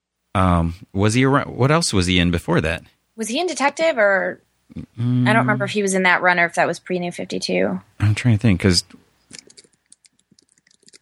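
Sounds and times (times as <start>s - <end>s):
speech: 0.4s - 9.0s
computer mouse or keyboard clicking: 9.3s - 10.9s.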